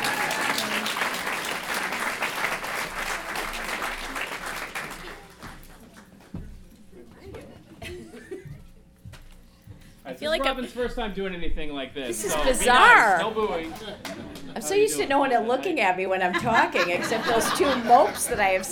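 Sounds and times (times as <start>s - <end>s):
audience clapping: 0.0s - 6.4s
people laughing: 7.8s - 8.7s, 12.2s - 14.6s, 16.2s - 18.7s
speech: 10.2s - 18.7s.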